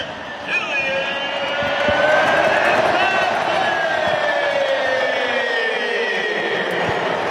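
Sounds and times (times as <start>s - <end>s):
huge stadium crowd cheering after a goal: 0.0s - 7.2s.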